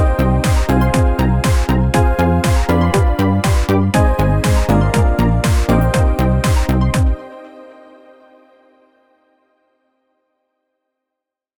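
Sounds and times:
European electronic dance music rhythm: 0.0s - 7.3s.

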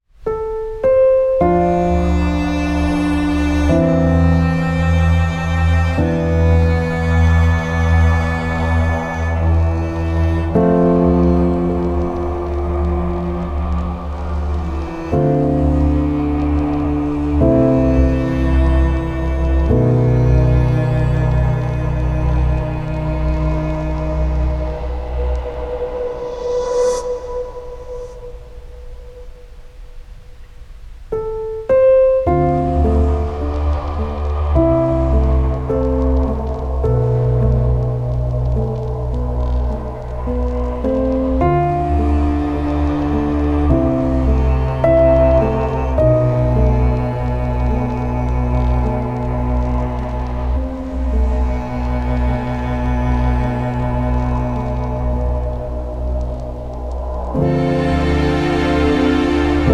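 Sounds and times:
dark solo: 0.1s - 59.7s.

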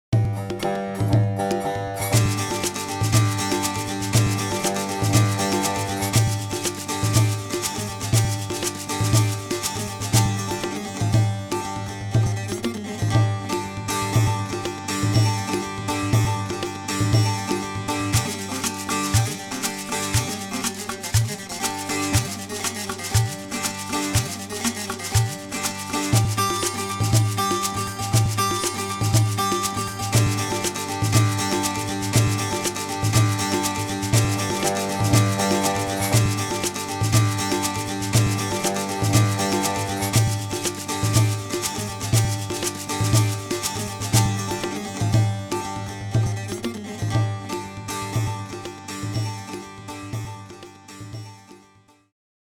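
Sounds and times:
ethnic music: 0.0s - 51.8s.

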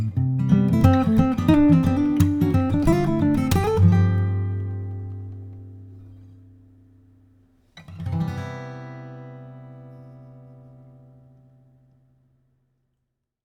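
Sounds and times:
bright folk music: 0.4s - 6.1s.

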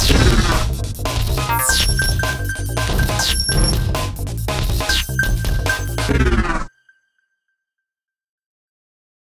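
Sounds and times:
fast comic EDM: 0.0s - 6.7s.

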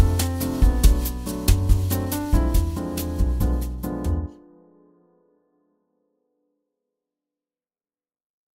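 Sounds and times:
bossa nova music: 0.0s - 4.4s.

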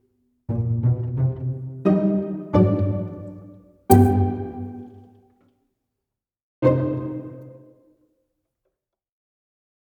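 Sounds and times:
pizzicato strings: 0.5s - 5.2s, 6.6s - 7.8s.

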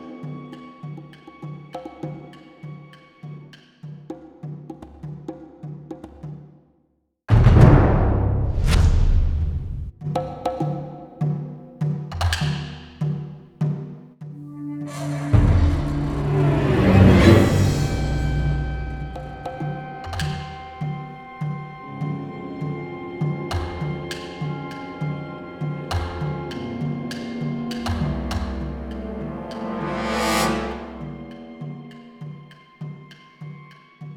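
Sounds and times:
ghost drum: 7.3s - 13.9s, 14.9s - 33.7s.

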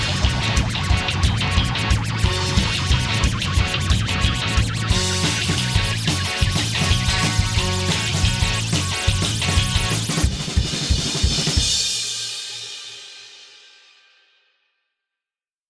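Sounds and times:
rock and roll music: 0.0s - 12.6s.

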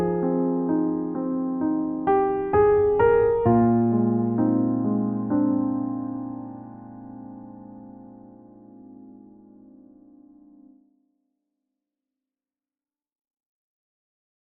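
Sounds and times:
emotional new age music: 0.0s - 10.8s.

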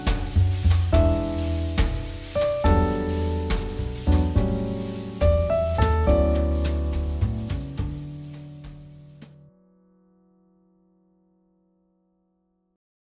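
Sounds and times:
jazz ballad: 0.0s - 9.5s.

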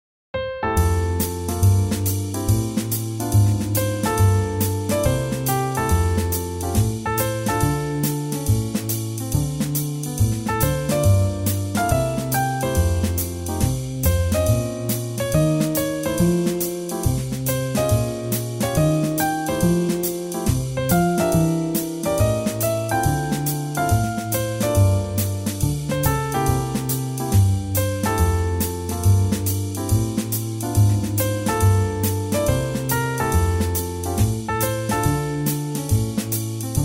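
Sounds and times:
swing jazz: 0.7s - 36.8s.

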